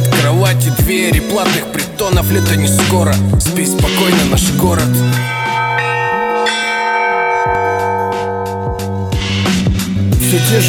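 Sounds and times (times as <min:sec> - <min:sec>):
speech: 0:00.7 - 0:05.9, 0:10.3 - 0:10.6
church bells pealing: 0:03.6 - 0:10.6.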